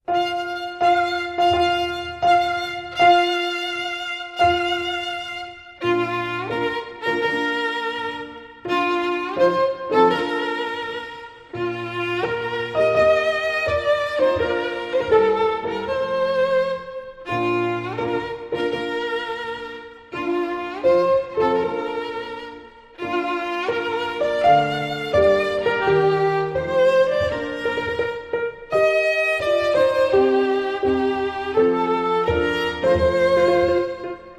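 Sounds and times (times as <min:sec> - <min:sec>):
piano playing a wedding march: 0:00.0 - 0:34.3
violin playing a wedding march: 0:00.0 - 0:34.3.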